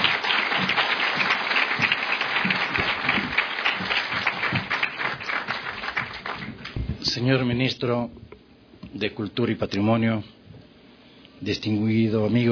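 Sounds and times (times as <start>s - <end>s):
audience applause welcoming a speaker at a cultural institution ceremony in Ecuador: 0.0s - 6.8s
speech: 7.2s - 8.2s, 8.9s - 10.4s, 11.4s - 12.5s.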